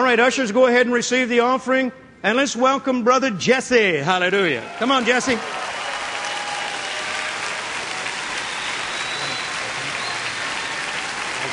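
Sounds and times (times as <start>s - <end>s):
speech: 0.0s - 5.7s
audience applause: 4.6s - 11.5s.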